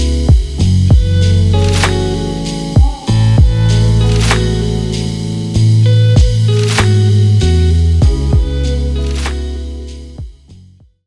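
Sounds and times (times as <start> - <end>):
lo-fi R&B groove: 0.0 - 10.9.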